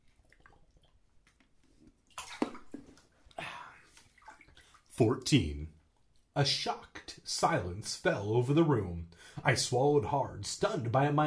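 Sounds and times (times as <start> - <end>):
bath water sloshing and splashing: 0.0 - 5.1
speech: 5.0 - 5.8, 6.4 - 11.2.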